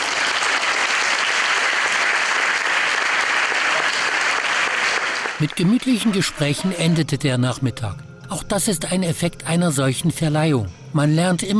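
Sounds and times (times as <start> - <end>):
audience applause: 0.0 - 6.6
speech: 5.4 - 11.5.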